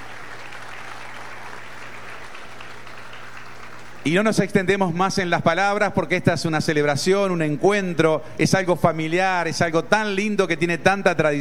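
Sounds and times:
loud applause: 0.0s - 4.5s
speech: 4.0s - 11.3s.

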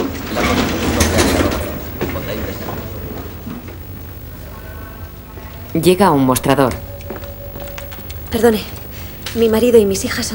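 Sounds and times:
sliding door opening: 0.0s - 3.7s
speech: 5.7s - 6.8s, 8.3s - 10.3s.

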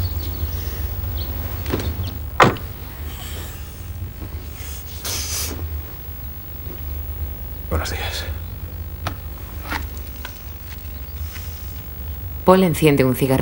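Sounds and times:
person getting into car: 0.8s - 7.0s, 9.2s - 12.3s
soft rustling inside a quiet car: 1.2s - 7.1s, 9.2s - 12.3s
car door shutting: 1.6s - 2.8s
speech: 7.8s - 8.4s, 12.5s - 13.3s.

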